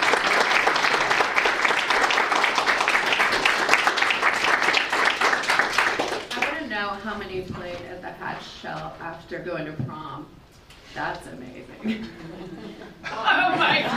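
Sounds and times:
round of applause: 0:00.0 - 0:06.6
speech: 0:08.2 - 0:13.9
laughter: 0:11.8 - 0:13.9.

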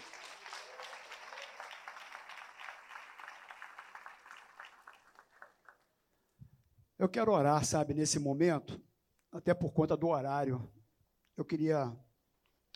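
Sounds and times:
audience applauding: 0:00.0 - 0:05.9
speech: 0:07.0 - 0:10.8, 0:11.4 - 0:12.1.

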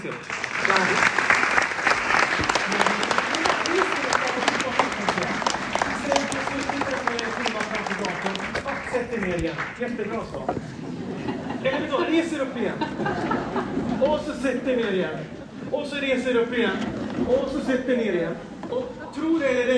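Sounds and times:
speech: 0:00.0 - 0:01.1, 0:09.4 - 0:19.7
audience applause: 0:00.0 - 0:10.3
laughter: 0:10.3 - 0:15.8, 0:18.4 - 0:19.7.

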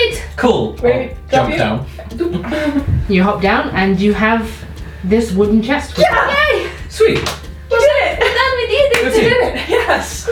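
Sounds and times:
speech: 0:00.1 - 0:07.9, 0:09.0 - 0:10.2
laughter: 0:02.2 - 0:03.1, 0:09.1 - 0:10.2
hands slapping in high fives among players celebrating a Dungeons & Dragons game: 0:07.1 - 0:07.5.

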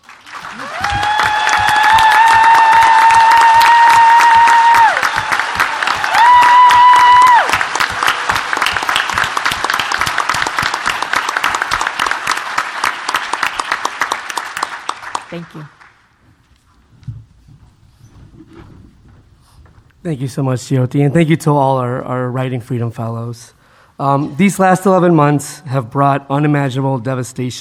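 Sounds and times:
crowd clapping: 0:00.0 - 0:16.1
whistles and cheering: 0:00.4 - 0:12.3
speech: 0:20.1 - 0:27.5.

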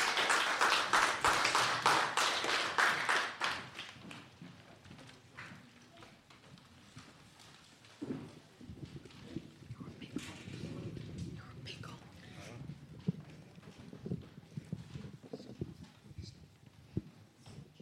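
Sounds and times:
round of applause: 0:00.0 - 0:04.3
faint murmurs: 0:08.2 - 0:17.8.

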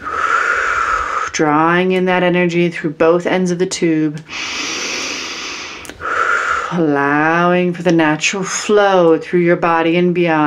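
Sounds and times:
deep breathing during a guided meditation: 0:00.0 - 0:01.4, 0:04.2 - 0:06.9
speech: 0:01.4 - 0:04.6, 0:06.7 - 0:10.4.

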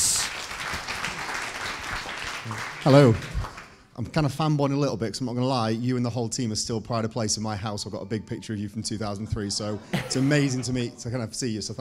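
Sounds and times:
audience applause at a live question-and-answer event: 0:00.0 - 0:03.8
speech: 0:02.5 - 0:03.3, 0:04.0 - 0:11.7
laughter: 0:09.0 - 0:11.7.

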